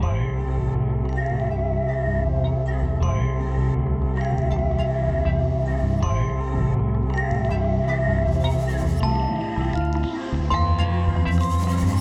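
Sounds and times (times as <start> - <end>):
drones and textures: 0.0 - 11.9.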